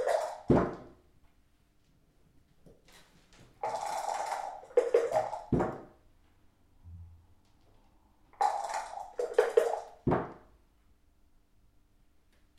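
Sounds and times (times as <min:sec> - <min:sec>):
dice rolling in a dice game: 0:03.6 - 0:05.5, 0:08.4 - 0:09.9.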